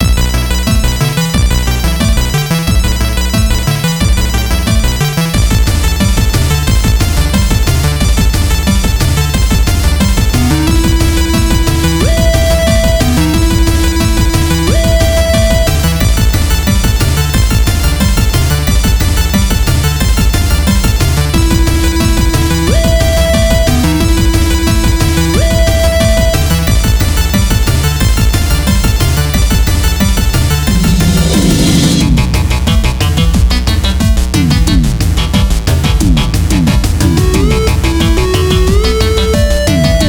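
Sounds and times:
chiptune music: 0.0s - 40.0s.

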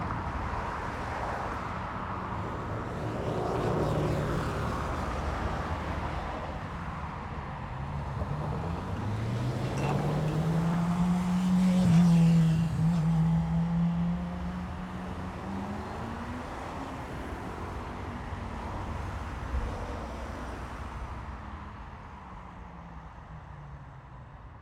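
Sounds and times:
city street traffic with cars: 0.0s - 24.5s
city tram: 7.8s - 13.0s.

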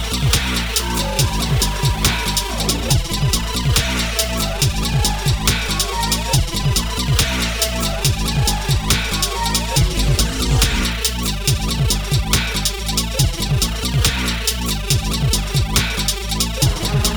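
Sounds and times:
robotic sci-fi song: 0.0s - 17.1s.

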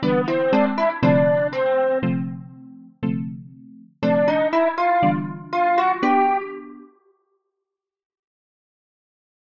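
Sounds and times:
RPG town music: 0.0s - 6.9s.

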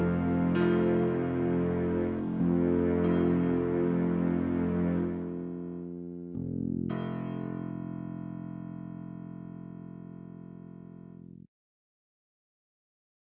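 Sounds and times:
short circling stringed background music tune: 0.0s - 7.4s.

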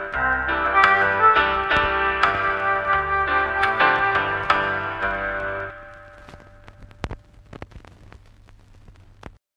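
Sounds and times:
bossa nova music: 0.0s - 7.0s.

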